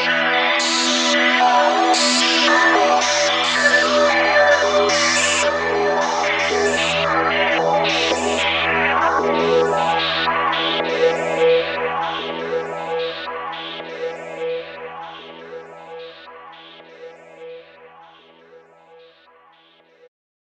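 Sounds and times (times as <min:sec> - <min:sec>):
noisy synth pad on CS-80 V: 0:00.1 - 0:16.0.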